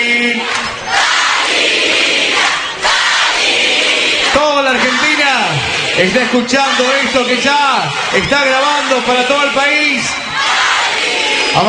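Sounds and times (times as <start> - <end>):
crowd shouting a name: 0.4 - 11.6
speech: 6.0 - 10.2.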